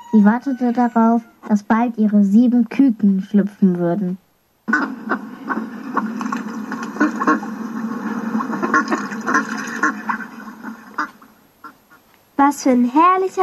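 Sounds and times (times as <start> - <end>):
speech: 0.1 - 4.9, 12.4 - 13.4
duck quacking: 4.7 - 12.0.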